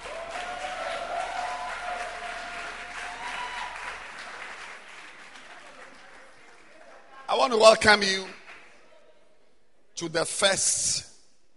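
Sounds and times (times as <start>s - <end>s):
audience applause: 0.0s - 7.2s
speech: 7.4s - 8.4s, 10.0s - 11.1s.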